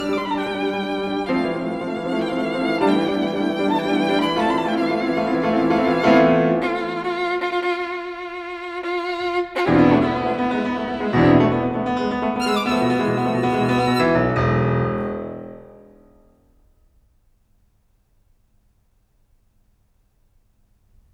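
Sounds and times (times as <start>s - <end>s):
violin: 0.0s - 15.5s
piano: 0.0s - 16.7s.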